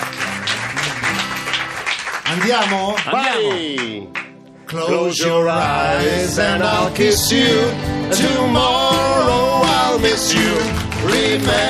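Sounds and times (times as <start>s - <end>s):
studio audience applause: 0.0s - 4.3s, 9.6s - 11.6s
speech: 2.3s - 11.6s.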